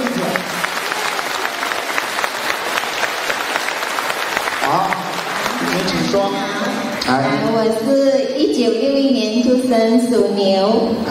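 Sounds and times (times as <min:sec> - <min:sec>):
crowd clapping: 0:00.0 - 0:07.2
speech: 0:06.1 - 0:11.0.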